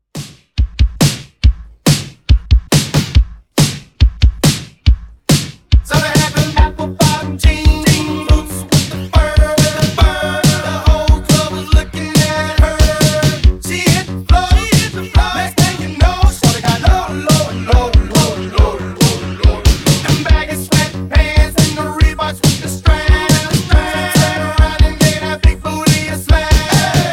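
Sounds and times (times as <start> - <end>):
drum: 0.0 - 27.1.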